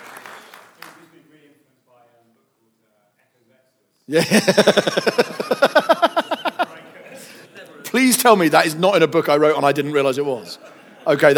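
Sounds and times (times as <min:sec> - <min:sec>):
brief clapping: 0:00.0 - 0:01.1
speech: 0:04.1 - 0:05.4, 0:08.0 - 0:11.3
laughter: 0:04.1 - 0:11.3.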